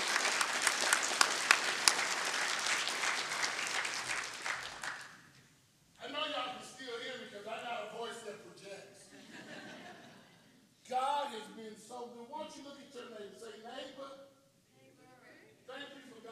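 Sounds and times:
audience clapping: 0:00.0 - 0:05.4
man speaking: 0:06.0 - 0:09.0, 0:10.8 - 0:14.4, 0:15.6 - 0:16.3
laughter: 0:09.0 - 0:10.5.

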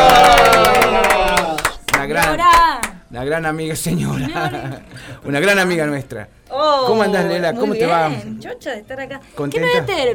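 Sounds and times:
cheering: 0:00.0 - 0:01.8
applause: 0:00.0 - 0:03.0
speech: 0:03.1 - 0:10.1.

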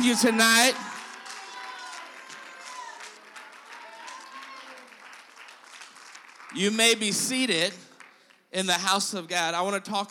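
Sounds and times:
speech: 0:00.0 - 0:00.9, 0:06.5 - 0:07.9, 0:08.5 - 0:10.0
large crowd applauding: 0:00.0 - 0:08.5.

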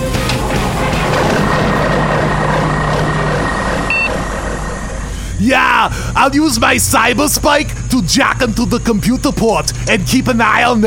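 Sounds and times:
spaceship engine starting up: 0:00.0 - 0:07.4
high electronic beep: 0:03.5 - 0:04.7
speech: 0:05.5 - 0:10.8.

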